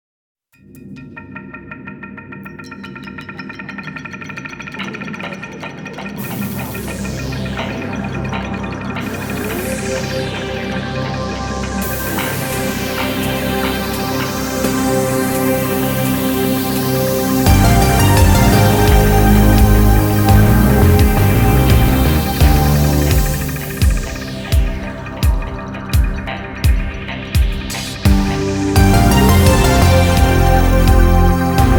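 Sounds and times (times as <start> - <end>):
courtroom lounge music: 2.4 - 31.7.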